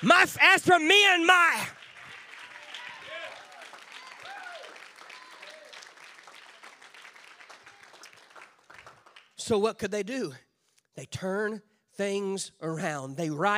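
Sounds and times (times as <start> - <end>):
speech: 0.0 - 1.8, 9.5 - 10.4, 11.0 - 13.5
voices calling out and cheering: 0.0 - 8.2
audience clapping hands: 0.0 - 9.6.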